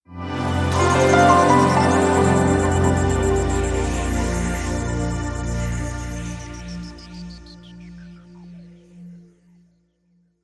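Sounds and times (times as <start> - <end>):
light smooth ident jingle: 0.3 - 8.1.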